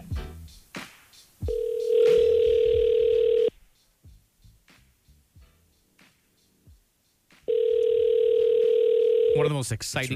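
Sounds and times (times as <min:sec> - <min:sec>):
telephone ringback tones down the line: 0:01.5 - 0:03.5, 0:07.5 - 0:09.5
speech: 0:09.6 - 0:10.1.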